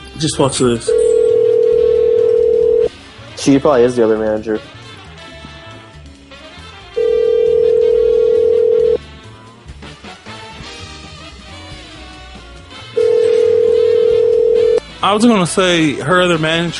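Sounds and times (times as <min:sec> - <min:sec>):
speech: 0:00.2 - 0:01.0, 0:03.4 - 0:04.8, 0:15.0 - 0:16.7
telephone call ringback tones: 0:00.9 - 0:02.9, 0:06.9 - 0:09.0, 0:13.0 - 0:14.8.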